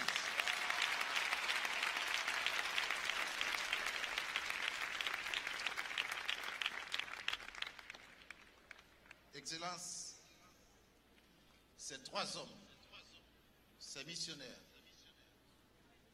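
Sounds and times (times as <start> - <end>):
audience applause: 0.0 - 9.1
speech: 9.5 - 10.0, 11.9 - 12.7, 14.0 - 14.7.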